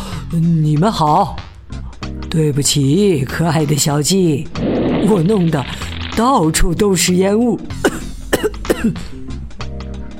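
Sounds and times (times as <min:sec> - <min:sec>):
speech: 0:00.3 - 0:01.5, 0:02.3 - 0:08.1, 0:08.8 - 0:09.2
man coughing: 0:07.8 - 0:09.1.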